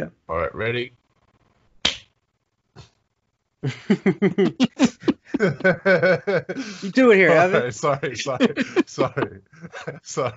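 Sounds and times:
speech: 0:00.0 - 0:01.0, 0:03.6 - 0:10.3
loud sharp hand clap: 0:01.8 - 0:02.1
rhythmic pulsing laughter: 0:03.6 - 0:10.3.

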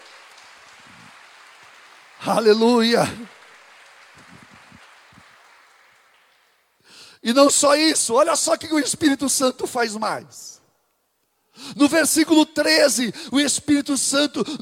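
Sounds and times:
crowd clapping: 0:00.0 - 0:06.9
speech: 0:02.2 - 0:03.3, 0:07.3 - 0:10.6, 0:11.6 - 0:14.6.

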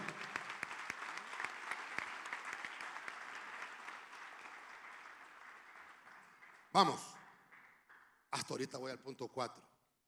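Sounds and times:
audience applause: 0:00.0 - 0:08.0
speech: 0:06.8 - 0:07.1, 0:08.4 - 0:09.7.

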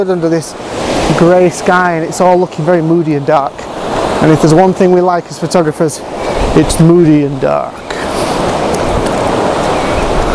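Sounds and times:
speech: 0:00.0 - 0:07.9
ocean waves breaking on beach: 0:00.0 - 0:10.3.

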